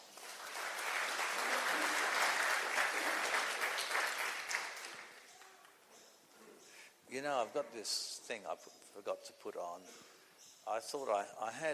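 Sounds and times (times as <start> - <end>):
crowd clapping: 0.0 - 5.5
speech: 7.2 - 11.7.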